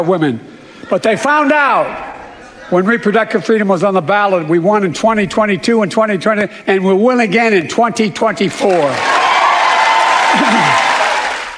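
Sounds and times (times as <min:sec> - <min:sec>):
speech: 0:00.0 - 0:02.1, 0:02.7 - 0:09.2
crowd applause and cheering at a State of the Union address: 0:00.0 - 0:05.9, 0:08.3 - 0:11.5
laughter: 0:00.0 - 0:11.5.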